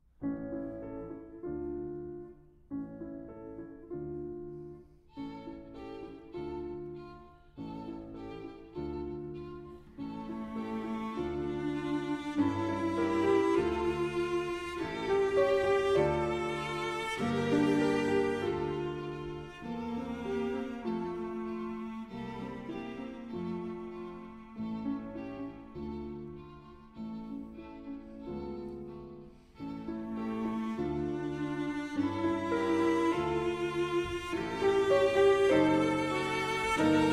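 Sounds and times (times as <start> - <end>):
piano trio: 0.2 - 37.1.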